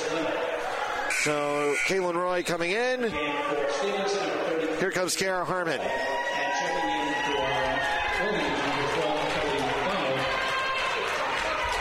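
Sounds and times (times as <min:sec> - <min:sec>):
basketball crowd voices: 0:00.0 - 0:11.7
speech: 0:01.2 - 0:06.4
basketball crowd clapping and cheering: 0:05.8 - 0:11.7.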